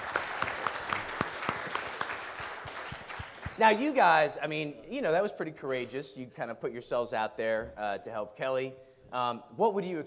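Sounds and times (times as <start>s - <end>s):
audience applause: 0.0s - 4.0s
speech: 3.6s - 10.0s.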